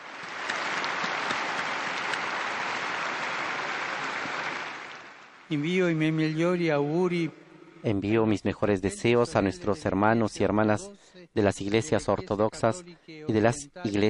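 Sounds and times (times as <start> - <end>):
crowd applauding: 0.0 - 5.5
speech: 5.5 - 14.0.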